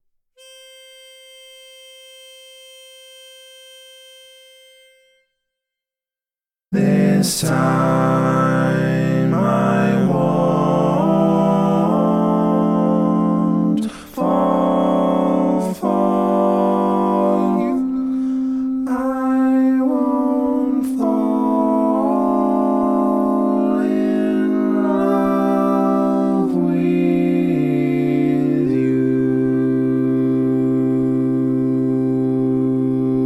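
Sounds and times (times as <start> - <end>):
barbershop bass singing tags: 6.7 - 33.2.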